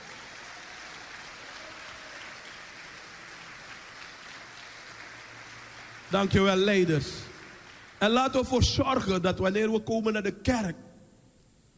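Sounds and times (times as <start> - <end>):
audience applause: 0.0 - 8.2
speech: 6.1 - 7.3, 8.0 - 10.8.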